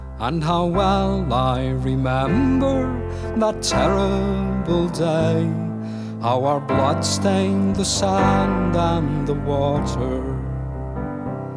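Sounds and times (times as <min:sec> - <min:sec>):
music: 0:00.0 - 0:11.5.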